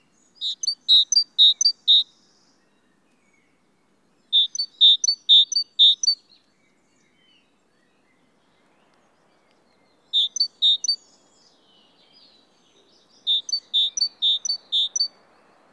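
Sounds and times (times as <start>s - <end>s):
great tit calling: 0.3s - 2.1s, 4.3s - 6.2s, 10.1s - 11.2s, 12.9s - 15.2s.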